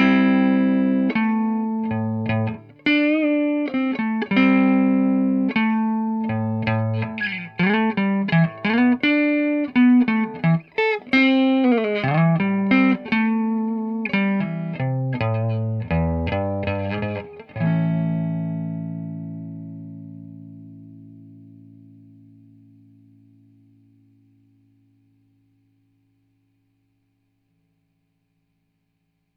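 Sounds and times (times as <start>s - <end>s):
electric guitar through a Deluxe Reverb amp with overdrive pedals: 0.0s - 24.1s.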